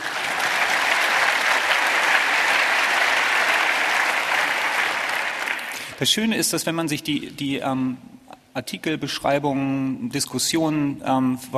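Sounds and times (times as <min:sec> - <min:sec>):
audience applause: 0:00.0 - 0:06.0
speech: 0:06.0 - 0:11.5.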